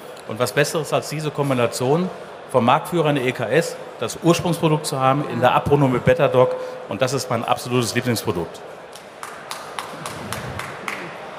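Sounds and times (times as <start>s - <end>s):
speech: 0.3s - 8.8s
audience applause: 9.0s - 11.3s.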